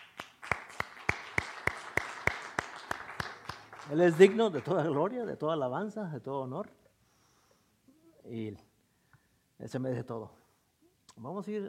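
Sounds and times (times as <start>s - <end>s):
rhythmic audience clapping in unison: 0.0s - 5.2s
speech: 3.9s - 6.8s, 8.3s - 8.7s, 9.6s - 10.4s, 11.2s - 11.6s.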